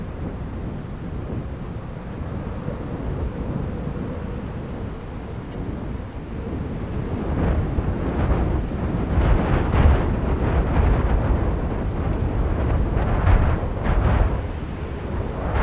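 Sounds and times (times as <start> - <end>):
storm in the mountains: 0.0 - 15.6.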